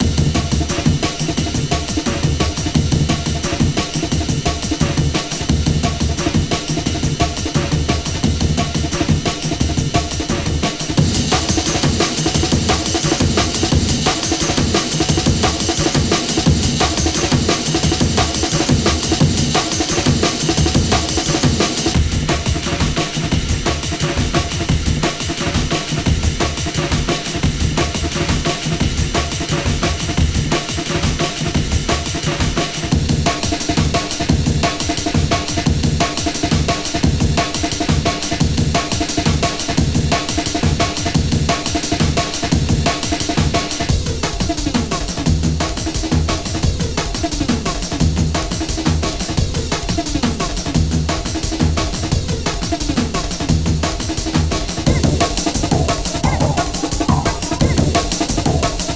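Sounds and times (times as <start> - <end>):
breakbeat drums: 0.0 - 58.9.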